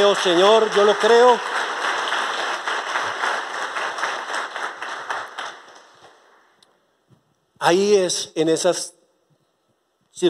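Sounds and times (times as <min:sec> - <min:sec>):
speech: 0:00.0 - 0:01.6, 0:07.6 - 0:09.0
audience applause: 0:00.0 - 0:06.2.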